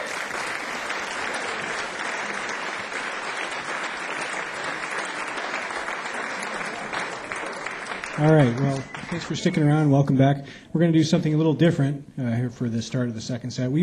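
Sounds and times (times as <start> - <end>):
audience applause at a live music show: 0.0 - 9.7
speech: 8.2 - 13.8.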